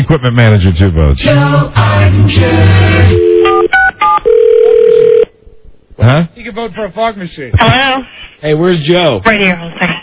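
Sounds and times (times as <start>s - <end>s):
speech: 0.1s - 3.3s, 6.0s - 10.0s
continuous dial tone of a very old clubhouse telephone: 3.2s - 5.3s.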